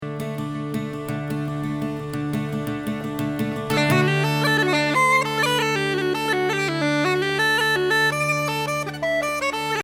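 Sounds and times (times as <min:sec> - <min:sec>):
open slip jigs: 0:00.7 - 0:09.8.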